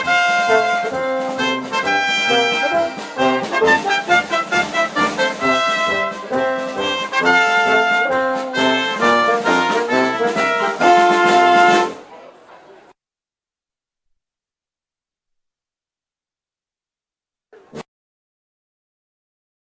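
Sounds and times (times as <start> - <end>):
German brass band playing: 0.0 - 12.1.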